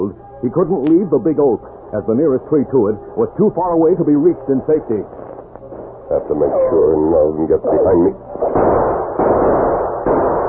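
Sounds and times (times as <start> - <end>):
speech: 0.0 - 5.2, 6.1 - 8.8
gunfire sound effect in an audio drama: 8.4 - 10.4.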